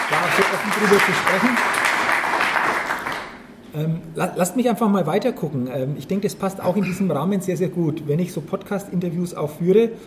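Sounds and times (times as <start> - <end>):
applause from a live audience: 0.0 - 3.4
speech: 0.4 - 2.0, 3.7 - 10.0.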